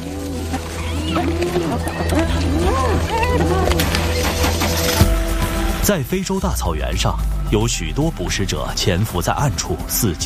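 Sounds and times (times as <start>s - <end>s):
pack of spotted hyenas whooping and yelping: 0.0s - 5.0s
steady low rumble: 0.0s - 10.2s
speech: 5.9s - 10.2s.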